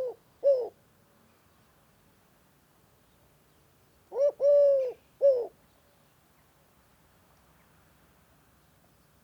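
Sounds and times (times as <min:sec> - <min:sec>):
Eurasian collared dove calling: 0:00.0 - 0:00.8, 0:04.1 - 0:05.5.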